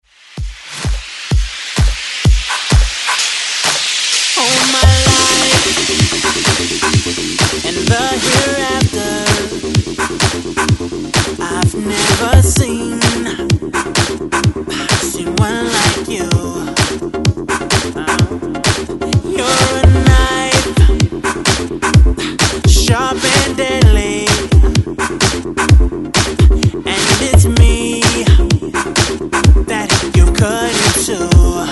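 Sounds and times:
drums: 0.0 - 31.7.

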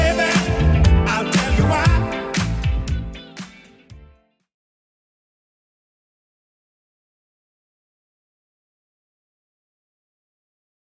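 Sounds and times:
80s style music at 118 bpm: 0.0 - 4.4.

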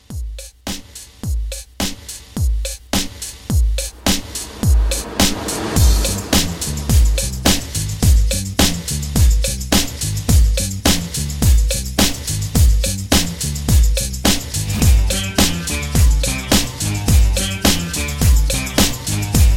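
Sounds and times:
70s soul drum beat: 0.0 - 4.0, 4.8 - 19.5.

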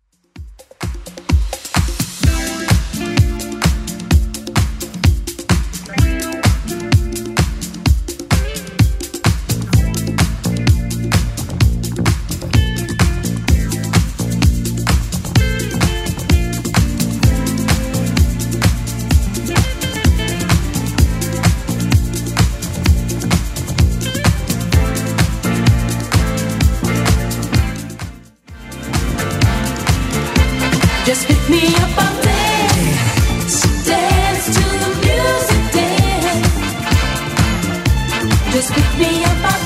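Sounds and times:
80s club edit music: 0.4 - 39.6.

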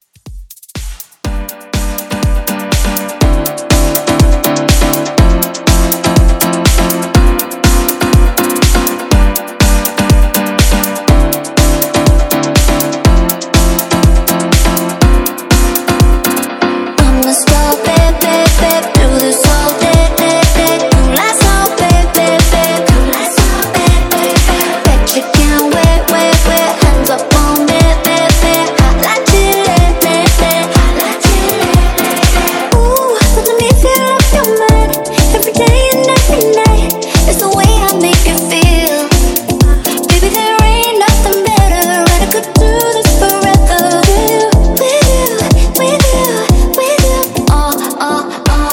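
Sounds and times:
club pop dance music at 122 BPM: 0.0 - 48.7.

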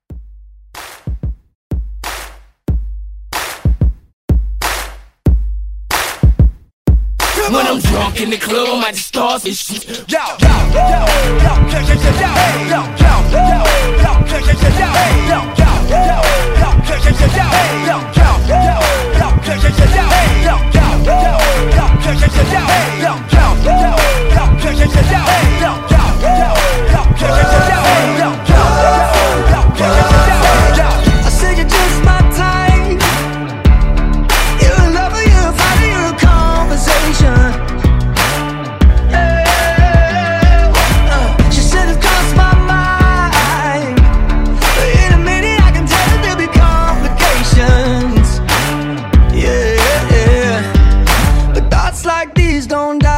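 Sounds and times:
drum loop: 0.1 - 53.1.

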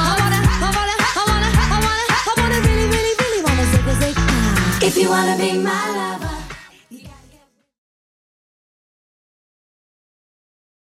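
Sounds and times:
nineties style beat: 0.0 - 7.2.

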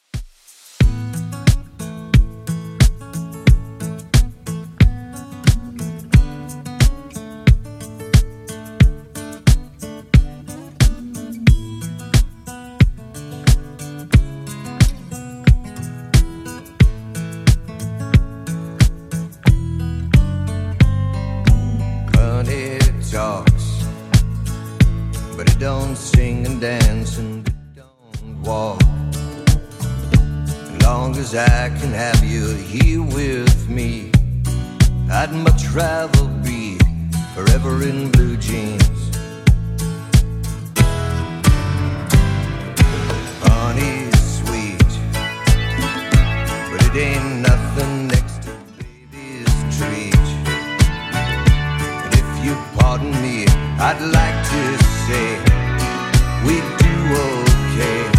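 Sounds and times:
70s Redrum drum machine beat: 0.0 - 27.6, 28.2 - 58.1.

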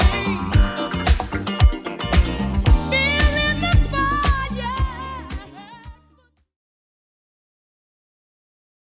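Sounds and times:
1980s style redrum beat at 113 BPM: 0.0 - 6.2.

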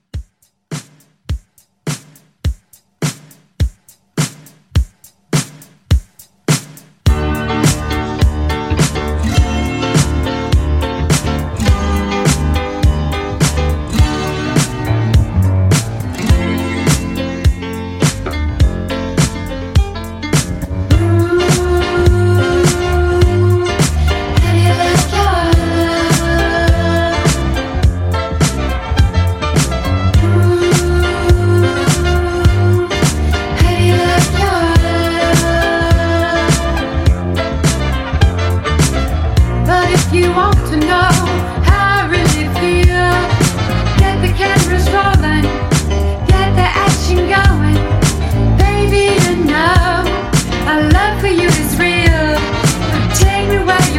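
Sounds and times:
1970s disco music: 0.0 - 53.9.

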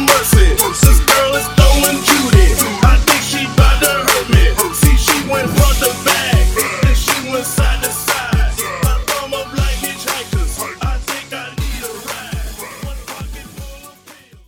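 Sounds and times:
throwback party breakbeat: 0.0 - 14.4
record scratching: 1.7 - 7.0.

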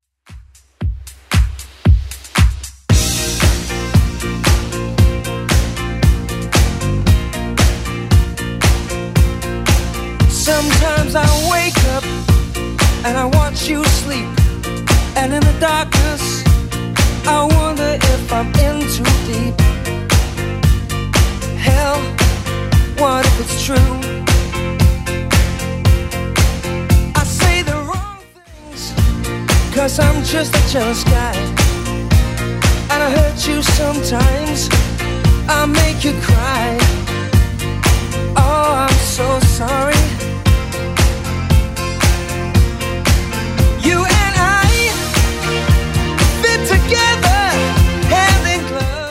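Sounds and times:
1980s club music at 115 bpm: 0.3 - 49.0.

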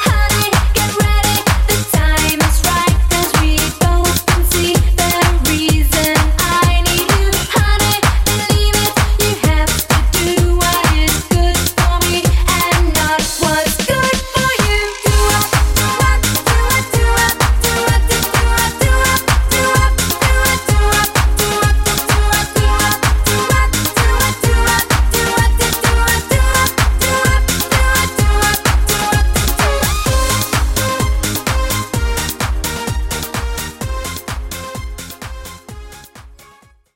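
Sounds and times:
dance drum beat at 128 BPM: 0.0 - 36.4.

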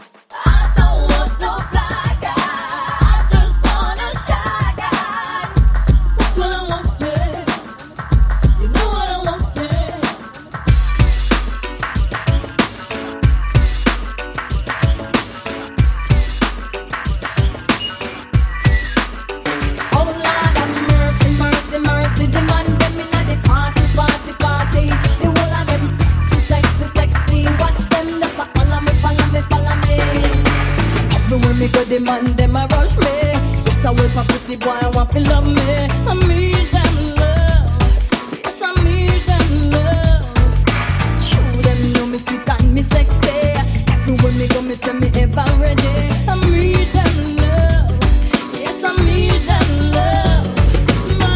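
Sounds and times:
DJ intro and outro music: 0.4 - 51.3.

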